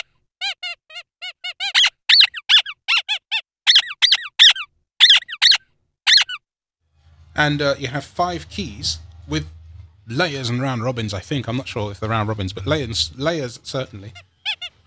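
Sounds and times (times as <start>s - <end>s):
squeaky dog toy squeezed: 0.0s - 6.4s, 14.0s - 14.8s
speech: 7.4s - 14.3s.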